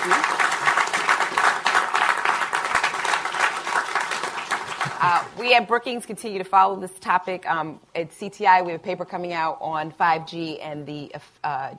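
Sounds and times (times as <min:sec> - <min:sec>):
audience applause: 0:00.0 - 0:05.4
speech: 0:05.0 - 0:11.7.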